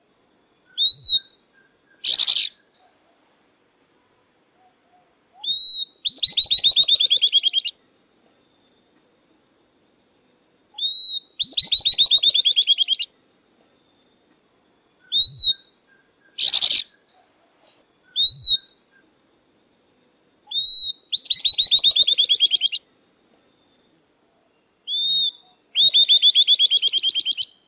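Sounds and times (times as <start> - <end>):
southern beardless-tyrannulet song: 0.8 - 2.7, 5.4 - 7.8, 10.8 - 13.1, 15.0 - 18.8, 20.5 - 22.8, 24.9 - 27.6.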